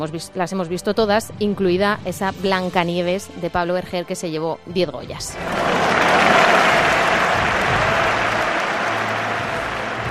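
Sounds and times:
speech: 0.0s - 5.9s
bullring crowd ovation: 5.4s - 10.0s.

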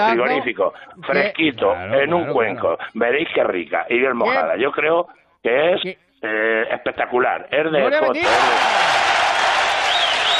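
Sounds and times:
speech: 0.0s - 9.0s
applause ovation: 8.2s - 10.3s.

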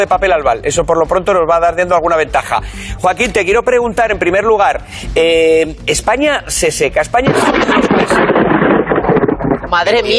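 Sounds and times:
speech: 0.0s - 8.5s, 9.7s - 10.1s
thunder clap during a storm: 7.3s - 10.1s.

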